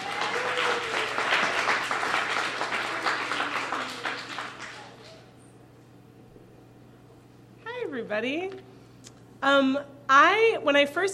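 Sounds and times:
crowd applauding: 0:00.0 - 0:05.3
speech: 0:08.1 - 0:08.7, 0:09.4 - 0:11.1.

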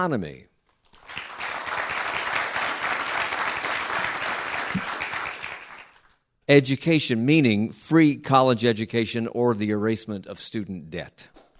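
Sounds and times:
speech: 0:00.0 - 0:00.5, 0:06.5 - 0:11.4
audience applause: 0:01.0 - 0:06.1.

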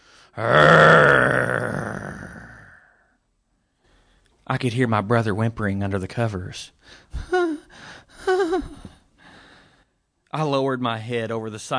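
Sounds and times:
speech: 0:00.4 - 0:00.8, 0:04.5 - 0:07.4, 0:10.4 - 0:11.7
person growling like a werewolf: 0:00.4 - 0:03.1.

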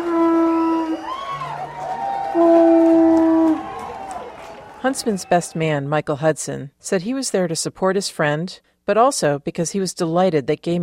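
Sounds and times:
conch shell blown: 0:00.0 - 0:01.1, 0:02.2 - 0:04.0
crowd cheering and clapping: 0:00.0 - 0:05.7
speech: 0:04.8 - 0:10.8.

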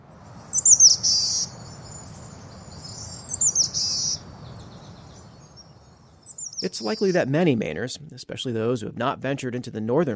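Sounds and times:
boreal chickadee calling: 0:00.5 - 0:05.3, 0:06.2 - 0:07.3
speech: 0:06.6 - 0:10.1.

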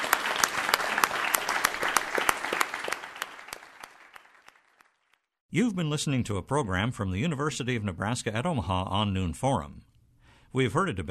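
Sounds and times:
audience applause: 0:00.0 - 0:05.1
speech: 0:05.5 - 0:09.9, 0:10.5 - 0:11.0.

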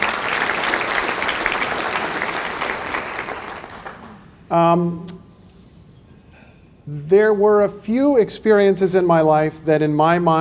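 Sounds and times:
audience applauding: 0:00.0 - 0:04.3
speech: 0:04.5 - 0:05.2, 0:06.9 - 0:10.3.

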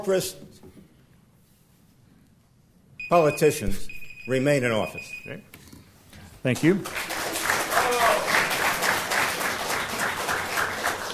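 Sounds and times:
speech: 0:00.0 - 0:00.6, 0:03.1 - 0:05.5, 0:06.4 - 0:07.1
audience applause: 0:06.8 - 0:11.1.

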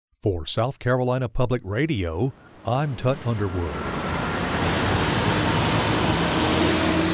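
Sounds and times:
speech: 0:00.2 - 0:04.0
busy road traffic: 0:02.3 - 0:07.1.

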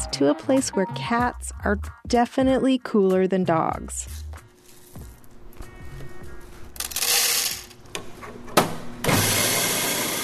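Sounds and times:
speech: 0:00.1 - 0:04.2
Oakland coffee shop ambience: 0:02.6 - 0:10.2.

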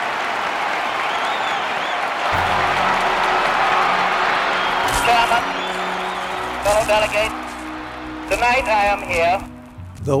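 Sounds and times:
convention delegates applauding: 0:00.0 - 0:09.8
whistles: 0:00.9 - 0:08.8
people shouting: 0:02.3 - 0:08.9
speech: 0:06.9 - 0:07.4, 0:08.3 - 0:10.1.

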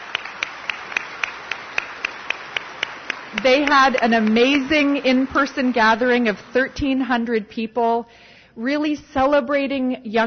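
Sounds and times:
audience applause: 0:00.0 - 0:06.6
speech: 0:03.3 - 0:10.2.

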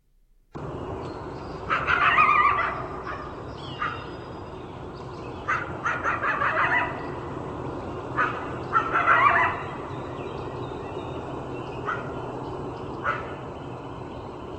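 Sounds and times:
coyote yips and howls: 0:01.7 - 0:04.2, 0:05.5 - 0:07.1, 0:08.2 - 0:09.9.

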